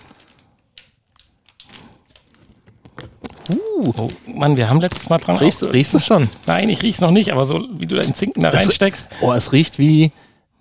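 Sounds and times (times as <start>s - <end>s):
snack bag being opened: 0.0s - 6.6s
speech: 3.5s - 10.3s.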